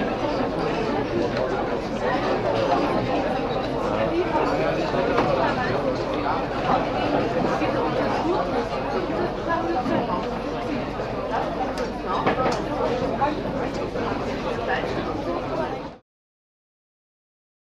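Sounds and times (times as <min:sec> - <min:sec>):
lively casino crowd: 0:00.0 - 0:16.0.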